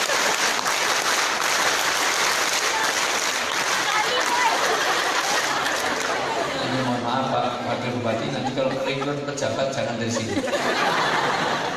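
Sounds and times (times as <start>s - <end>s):
laughter: 0.0s - 0.6s, 2.8s - 11.7s
group clapping a Pramuka scout clap: 0.0s - 6.6s
speech: 8.0s - 11.5s.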